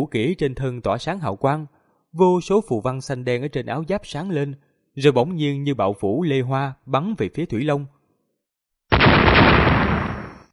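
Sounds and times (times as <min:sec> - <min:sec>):
speech: 0:00.0 - 0:08.0
rapid string of booming explosions: 0:08.9 - 0:10.5.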